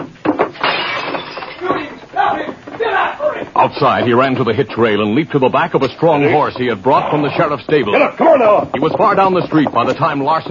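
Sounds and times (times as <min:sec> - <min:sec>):
window glass shattering: 0:00.2 - 0:02.0
glass shards tinkling and rattling: 0:00.6 - 0:01.7
speech: 0:03.6 - 0:10.4.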